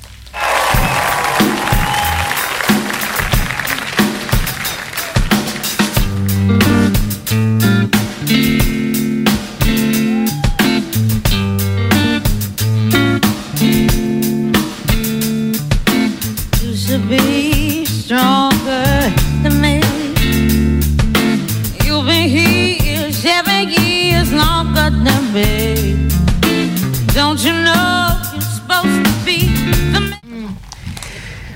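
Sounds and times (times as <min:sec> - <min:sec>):
audience applause: 0:00.3 - 0:06.5
live soul song performance: 0:00.6 - 0:15.3, 0:15.9 - 0:30.2.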